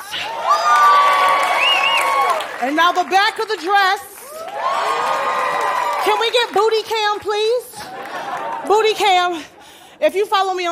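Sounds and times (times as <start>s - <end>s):
high-pitched whoops and screams: 0.1s - 2.5s, 4.3s - 6.1s
audience cheering: 0.1s - 3.2s, 3.9s - 6.7s
speech: 2.6s - 5.3s, 6.0s - 7.7s, 8.6s - 10.6s.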